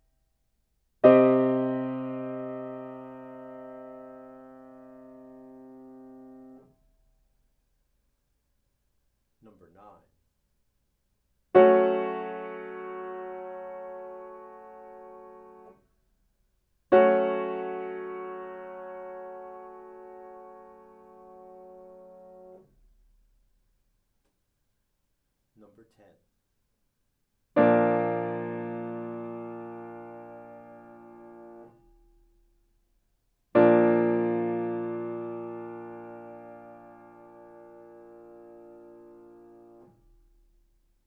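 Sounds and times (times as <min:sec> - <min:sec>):
chords: 0:01.0 - 0:06.7, 0:11.6 - 0:15.7, 0:16.9 - 0:22.6, 0:27.6 - 0:31.8, 0:33.6 - 0:40.0.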